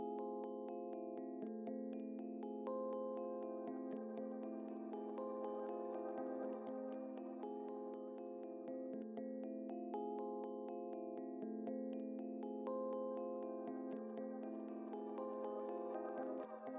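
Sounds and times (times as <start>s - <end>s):
synths and keys: 0.2s - 16.7s.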